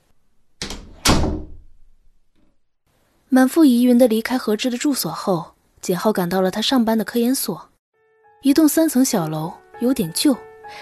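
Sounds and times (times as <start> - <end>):
door slammed shut: 0.6 - 1.9
speech: 3.4 - 7.7, 8.4 - 10.7.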